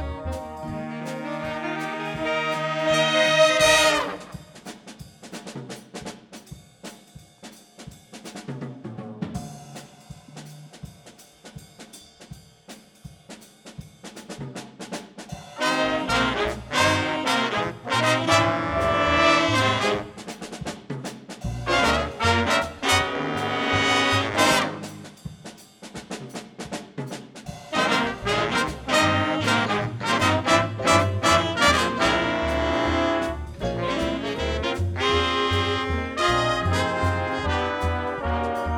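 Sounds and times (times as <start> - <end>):
jazz band playing: 0.0 - 5.4, 15.4 - 20.8, 21.4 - 25.4, 27.5 - 38.7.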